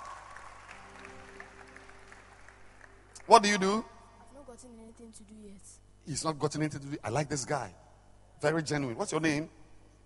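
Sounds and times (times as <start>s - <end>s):
audience clapping hands: 0.0s - 3.8s
speech: 3.3s - 3.9s, 4.6s - 7.8s, 8.4s - 9.6s.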